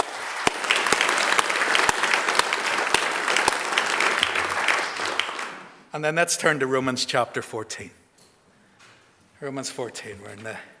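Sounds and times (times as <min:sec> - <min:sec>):
audience applause: 0:00.0 - 0:05.8
speech: 0:06.0 - 0:08.0, 0:09.4 - 0:10.7.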